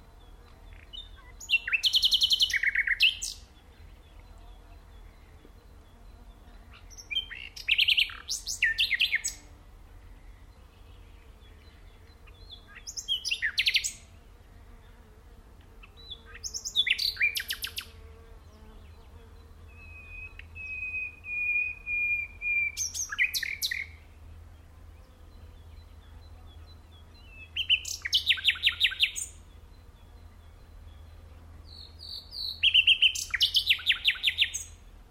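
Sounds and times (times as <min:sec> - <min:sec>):
common nightingale song: 0:00.2 - 0:09.4, 0:10.5 - 0:14.0, 0:15.8 - 0:17.9, 0:18.6 - 0:24.0, 0:25.6 - 0:34.8.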